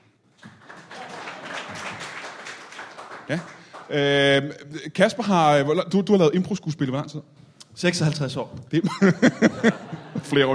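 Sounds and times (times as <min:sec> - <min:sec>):
live audience clapping: 0:00.4 - 0:04.2
laughter: 0:00.7 - 0:02.3, 0:08.8 - 0:10.5
speech: 0:03.3 - 0:10.5.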